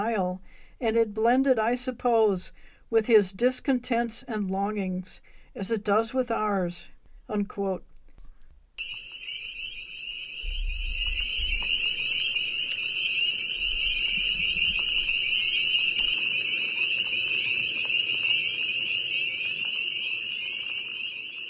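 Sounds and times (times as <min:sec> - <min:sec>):
speech: 0:00.1 - 0:07.9
chorus frogs trilling: 0:08.8 - 0:21.4.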